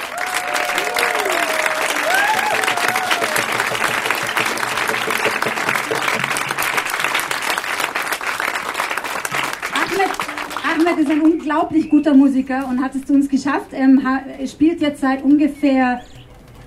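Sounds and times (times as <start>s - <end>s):
applause: 0.0s - 11.7s
speech: 11.1s - 16.1s.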